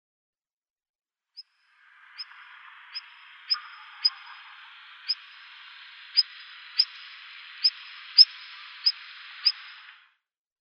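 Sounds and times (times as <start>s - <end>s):
black redstart calling: 2.2s - 9.8s.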